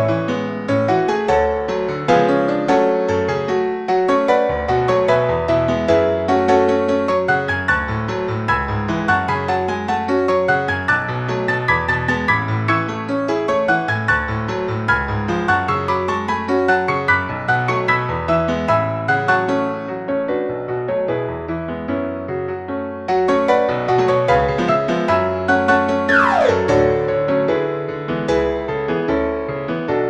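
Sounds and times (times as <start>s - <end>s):
piano piece: 0.0s - 30.0s.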